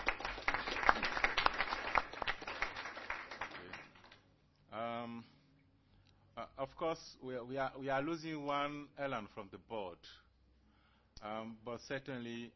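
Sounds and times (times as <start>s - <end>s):
crowd applauding: 0.0s - 4.2s
speech: 6.6s - 10.2s, 11.2s - 12.5s.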